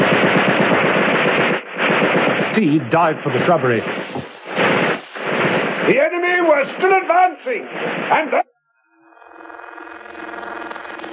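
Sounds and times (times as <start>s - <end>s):
machine gun fire: 0.0s - 8.4s
speech: 2.6s - 4.3s, 5.9s - 8.5s.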